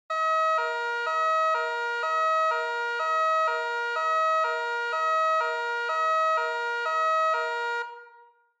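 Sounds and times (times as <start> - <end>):
police car siren close: 0.1 - 8.5.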